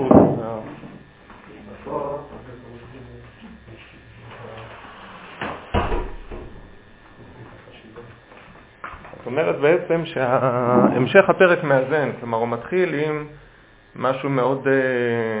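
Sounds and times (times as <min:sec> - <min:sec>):
door shutting: 0:04.4 - 0:06.7
speech: 0:09.4 - 0:13.4, 0:14.0 - 0:15.3.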